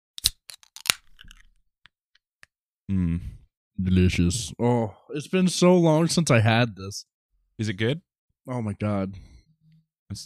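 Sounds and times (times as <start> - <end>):
zero sugar soda can cracking open with metallic clicks: 0.2 - 1.4
speech: 2.9 - 9.3.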